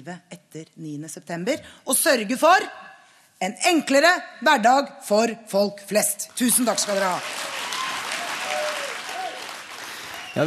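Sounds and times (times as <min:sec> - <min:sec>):
speech: 0:00.0 - 0:07.6
long applause from party delegates: 0:06.7 - 0:10.4
faint voices or cheers: 0:07.4 - 0:09.6.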